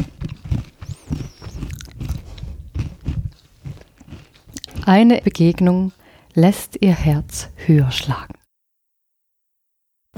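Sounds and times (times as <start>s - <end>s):
person crunching a biscuit while eating: 0.0s - 6.0s
speech: 4.9s - 8.4s.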